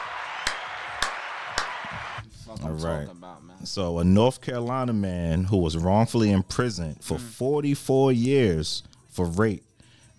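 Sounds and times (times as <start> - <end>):
sharp hand claps as applause: 0.0 - 2.2
speech: 2.5 - 10.1.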